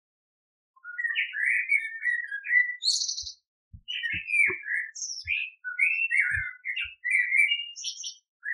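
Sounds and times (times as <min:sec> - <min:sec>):
Eurasian blackbird singing: 0:00.8 - 0:08.5.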